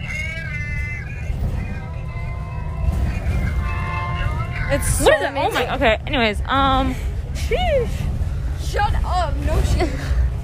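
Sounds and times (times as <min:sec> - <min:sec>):
siren wailing: 0:00.0 - 0:05.6
constant low rumble of traffic: 0:00.0 - 0:10.4
speech: 0:04.7 - 0:08.1, 0:08.7 - 0:10.2.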